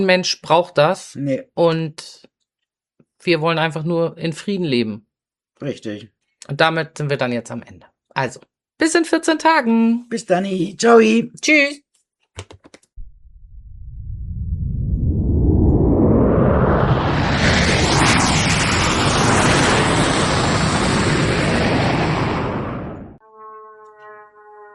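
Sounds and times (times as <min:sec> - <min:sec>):
speech: 0:00.0 - 0:02.3, 0:03.2 - 0:11.8, 0:12.4 - 0:12.8
loud airplane flying over: 0:14.9 - 0:23.2.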